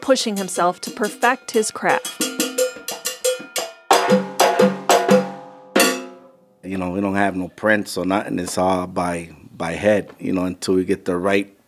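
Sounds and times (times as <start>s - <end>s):
cowbell struck in a syncopated rhythm: 0.0s - 6.5s
speech: 0.1s - 2.4s, 6.7s - 11.6s.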